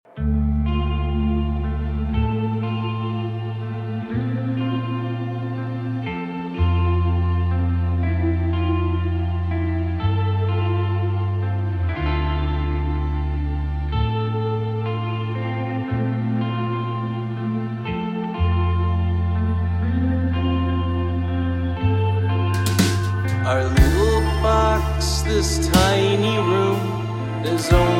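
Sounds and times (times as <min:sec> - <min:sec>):
drone: 0:00.1 - 0:27.9.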